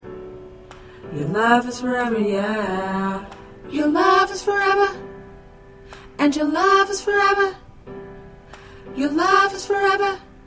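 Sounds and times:
choir with soprano: 0:01.1 - 0:05.0, 0:06.2 - 0:07.6, 0:08.9 - 0:10.4.

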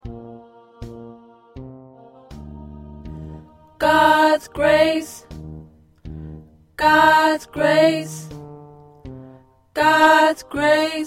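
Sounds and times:
first tenor voice singing: 0:03.6 - 0:05.3, 0:06.8 - 0:08.4, 0:09.8 - 0:11.0.

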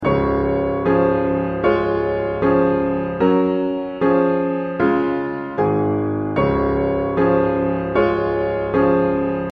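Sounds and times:
piano: 0:00.0 - 0:09.5.

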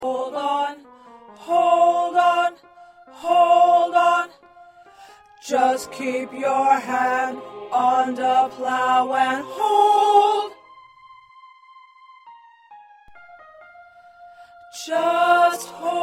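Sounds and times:
first tenor voice singing: 0:00.0 - 0:00.8, 0:01.4 - 0:04.4, 0:05.4 - 0:10.6, 0:14.8 - 0:16.0.

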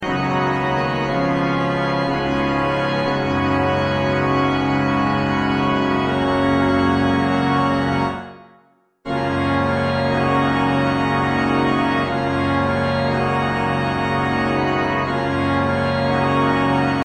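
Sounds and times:
organ: 0:00.0 - 0:08.5, 0:09.1 - 0:17.0.

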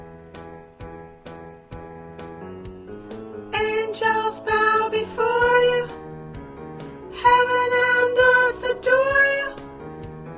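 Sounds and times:
choir with soprano: 0:03.5 - 0:06.0, 0:07.1 - 0:09.6.

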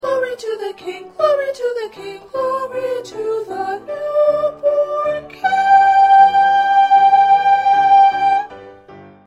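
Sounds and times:
first soprano singing: 0:00.0 - 0:08.8.

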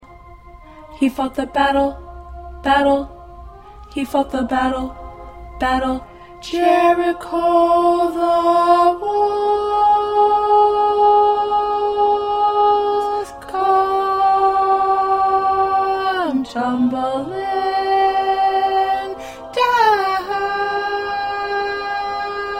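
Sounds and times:
alto voice: 0:00.7 - 0:22.5.

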